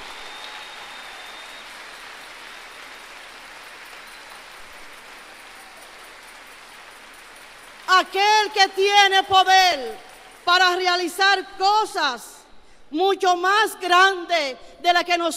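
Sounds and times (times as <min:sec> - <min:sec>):
audience applause: 0:00.0 - 0:08.1
speech: 0:08.0 - 0:12.3, 0:12.9 - 0:15.3.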